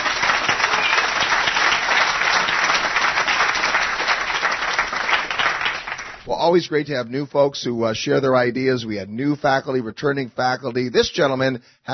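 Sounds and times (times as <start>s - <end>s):
audience applause: 0.0s - 6.3s
speech: 6.4s - 11.9s.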